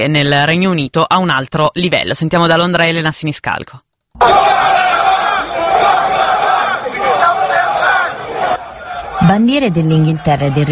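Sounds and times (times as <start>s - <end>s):
speech: 0.0s - 4.5s, 9.2s - 10.6s
protest crowd chanting: 4.2s - 10.6s.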